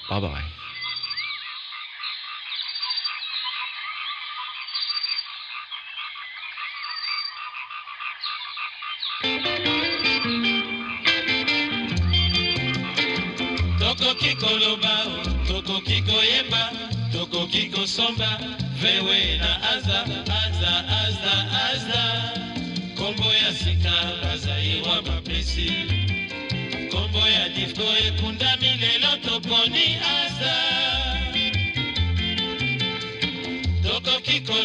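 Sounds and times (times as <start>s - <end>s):
tropical birdsong chirps and trills: 0.0s - 16.4s
Congolese rumba with deep bass and bright guitar: 9.2s - 34.6s.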